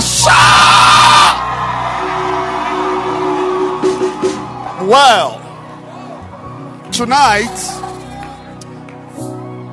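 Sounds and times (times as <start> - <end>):
audience shouting: 0.2 - 4.9
speech: 7.0 - 7.7.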